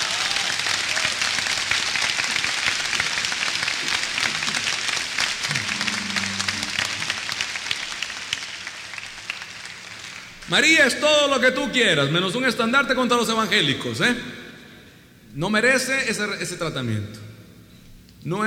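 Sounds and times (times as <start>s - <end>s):
audience applause: 0.0s - 10.5s
speech: 10.5s - 14.4s, 15.4s - 17.2s, 18.2s - 18.4s.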